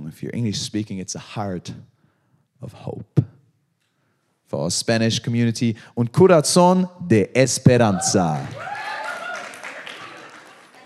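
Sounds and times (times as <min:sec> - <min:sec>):
speech: 0:00.2 - 0:01.9, 0:02.6 - 0:03.2, 0:04.5 - 0:08.8
audience applause: 0:08.1 - 0:10.8.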